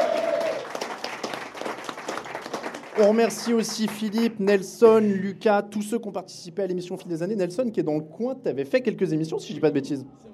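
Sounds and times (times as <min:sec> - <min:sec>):
audience applause for a guest: 0:00.0 - 0:04.2
speech: 0:03.0 - 0:10.3.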